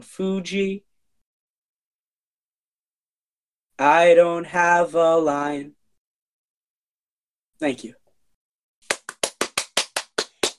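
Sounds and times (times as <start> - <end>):
speech: 0.0 - 0.9, 3.8 - 5.8, 7.6 - 8.0
one person clapping: 8.8 - 10.5.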